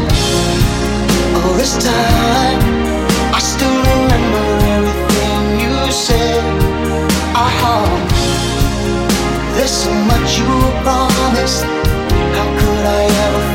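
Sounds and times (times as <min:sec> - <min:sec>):
80s pop rock drum beat: 0:00.0 - 0:13.5.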